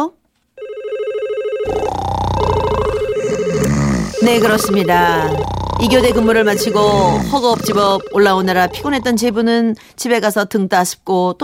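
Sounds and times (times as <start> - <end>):
speech: 0.0 - 0.2, 4.2 - 11.4
telephone ringing unanswered: 0.6 - 9.4
warbling electronic tones: 1.7 - 9.5.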